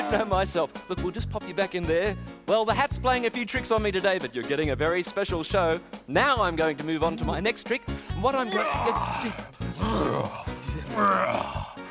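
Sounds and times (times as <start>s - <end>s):
speech: 0.1s - 11.6s
lion roaring during a magic show trick: 8.6s - 11.8s.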